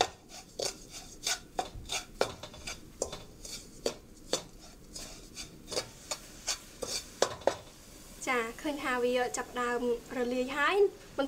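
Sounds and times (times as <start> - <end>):
spoon stirring sugar in a pot: 0.0 - 7.8
speech: 9.0 - 11.2.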